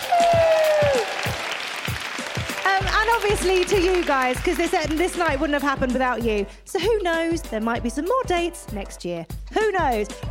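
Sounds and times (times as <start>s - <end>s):
audience applause and cheering at a live evening show: 0.0s - 5.4s
speech: 3.1s - 10.2s.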